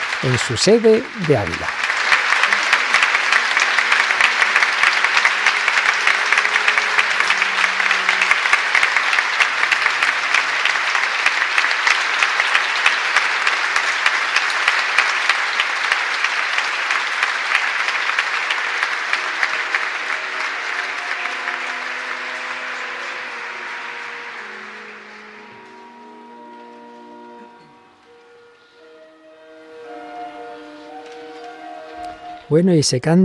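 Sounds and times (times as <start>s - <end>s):
audience applauding in cathedral: 0.0s - 32.5s
speech: 0.2s - 1.9s, 32.6s - 33.2s.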